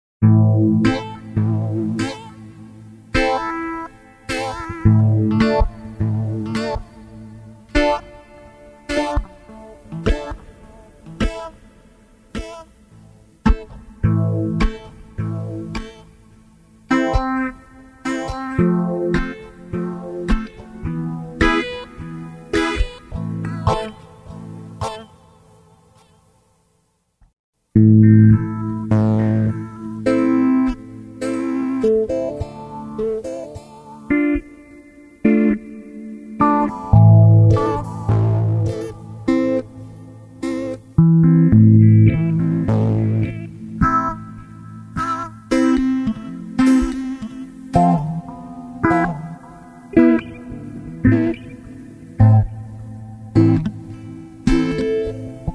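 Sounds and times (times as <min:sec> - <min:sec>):
reggae skank and chop guitar: 0:00.2 - 0:26.3, 0:27.8 - 0:55.5.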